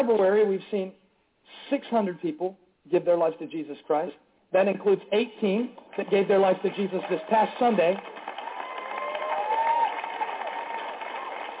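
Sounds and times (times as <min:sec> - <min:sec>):
speech: 0:00.0 - 0:08.2
crowd clapping: 0:05.7 - 0:11.5
whoops: 0:08.1 - 0:11.5.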